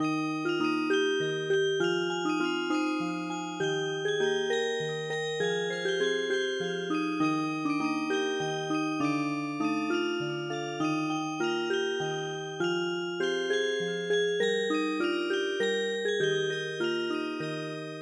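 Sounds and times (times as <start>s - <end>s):
music box: 0.0s - 17.9s.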